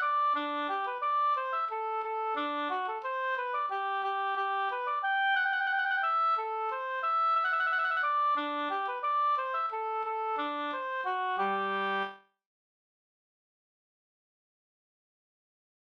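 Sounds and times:
waltz music: 0.0 - 12.2.

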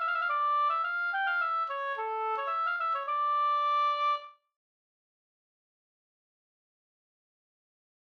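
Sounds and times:
polska folk dance tune: 0.0 - 4.3.

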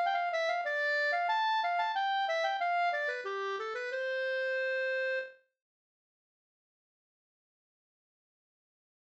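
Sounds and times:
Swedish polska folk dance tune: 0.0 - 5.4.

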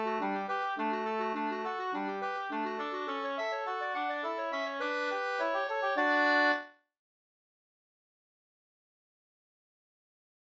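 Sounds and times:
slangpolska folk dance tune: 0.0 - 6.7.

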